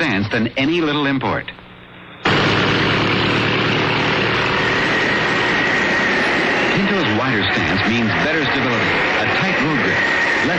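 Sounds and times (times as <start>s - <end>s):
speech: 0.1s - 1.6s, 7.2s - 10.5s
giant fans whipping up wind: 2.3s - 10.5s
loud steady rushing wind: 2.3s - 10.5s.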